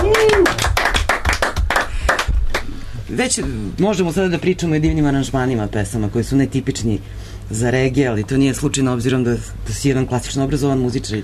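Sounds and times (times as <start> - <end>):
audience applause after a keyboard solo at a live concert: 0.0 - 2.8
speech: 3.1 - 11.2.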